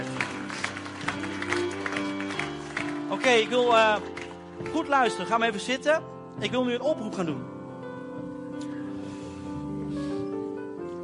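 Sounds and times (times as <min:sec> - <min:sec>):
audience applause: 0:00.0 - 0:05.0
speech: 0:03.2 - 0:07.5.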